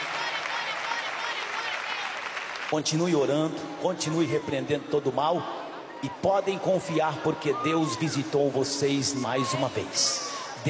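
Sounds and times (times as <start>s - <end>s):
church congregation clapping in praise during a service: 0.0s - 3.6s
speech: 2.7s - 10.6s.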